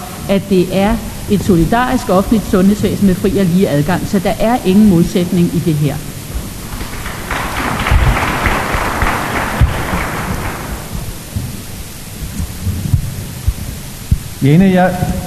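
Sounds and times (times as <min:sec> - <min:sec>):
low murmur: 0:00.0 - 0:15.2
speech: 0:00.3 - 0:06.1, 0:14.4 - 0:15.2
audience applause: 0:06.3 - 0:11.4.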